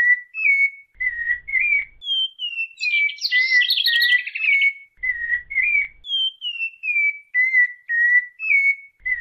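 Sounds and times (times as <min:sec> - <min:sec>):
Cocoa Thrush singing fluty whistled phrases: 0:00.0 - 0:09.1.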